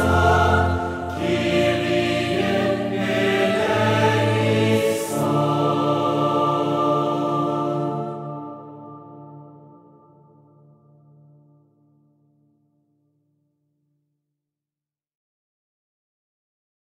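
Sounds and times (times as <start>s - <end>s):
choir singing a mass: 0.0s - 9.6s.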